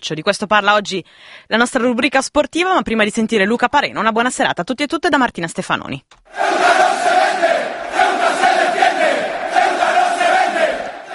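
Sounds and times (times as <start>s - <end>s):
speech: 0.0s - 6.7s
football ultras crowd chanting a slogan: 6.3s - 11.1s.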